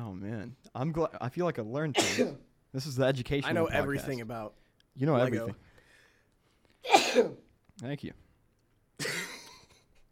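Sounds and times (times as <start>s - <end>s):
speech: 0.5s - 5.7s, 6.8s - 8.2s
person sneezing: 2.0s - 2.4s, 6.8s - 7.4s.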